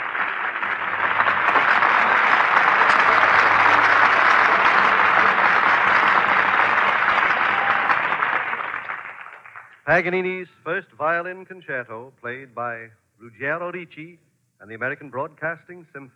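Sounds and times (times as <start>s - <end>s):
studio audience applause: 0.0s - 9.8s
speech: 9.9s - 16.1s.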